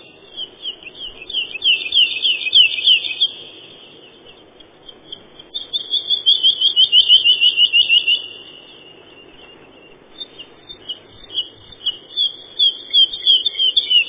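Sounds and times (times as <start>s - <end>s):
woodlark Lullula arborea singing whistled phrases: 0.0s - 14.0s.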